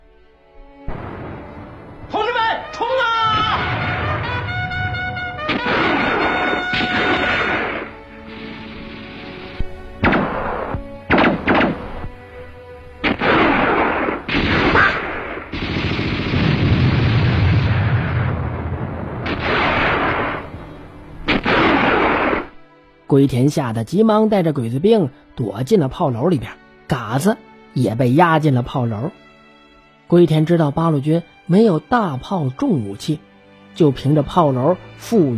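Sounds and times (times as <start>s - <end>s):
explosions: 0.9s - 2.0s, 3.2s - 12.1s, 13.0s - 22.6s
gunfire bursts: 3.6s - 9.1s, 10.0s - 12.0s, 13.0s - 17.4s, 19.2s - 20.5s, 21.3s - 22.6s
speech: 23.2s - 29.2s, 30.1s - 35.3s.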